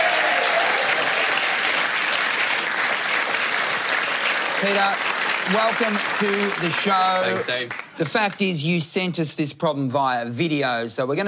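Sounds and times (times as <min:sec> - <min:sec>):
television studio audience clapping: 0:00.0 - 0:08.7
speech: 0:04.6 - 0:11.2.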